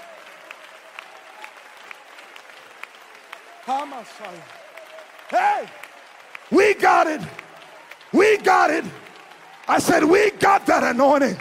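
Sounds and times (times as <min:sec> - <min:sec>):
audience clapping hands: 0:00.0 - 0:11.3
speech: 0:03.7 - 0:04.6, 0:05.3 - 0:05.8, 0:06.5 - 0:07.4, 0:08.1 - 0:09.0, 0:09.7 - 0:11.3.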